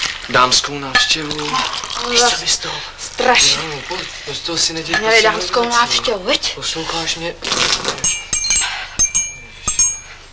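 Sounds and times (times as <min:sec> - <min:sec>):
speech: 0:00.3 - 0:08.2
glasses clinking: 0:00.8 - 0:02.5, 0:03.3 - 0:06.2, 0:08.0 - 0:10.3.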